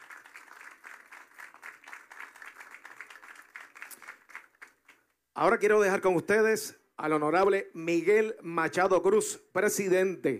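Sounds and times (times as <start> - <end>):
crowd applauding: 0.0 - 5.1
speech: 5.4 - 10.3.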